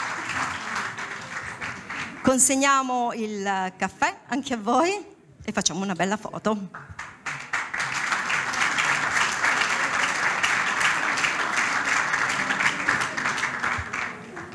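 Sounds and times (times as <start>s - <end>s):
audience applause: 0.0s - 2.3s, 7.0s - 14.5s
speech: 2.2s - 7.0s.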